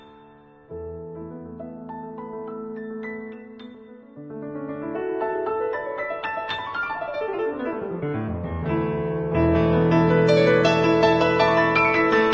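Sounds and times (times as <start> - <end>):
piano ringtone: 0.0 - 7.9, 8.6 - 12.3.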